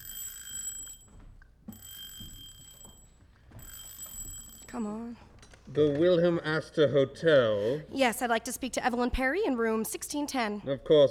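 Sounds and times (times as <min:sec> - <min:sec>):
telephone ringing on the line: 0:00.0 - 0:05.7
speech: 0:04.7 - 0:11.0.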